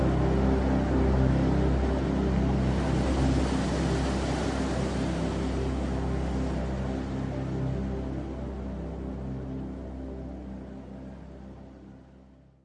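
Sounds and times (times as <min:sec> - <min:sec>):
ocean waves: 0:00.1 - 0:08.9.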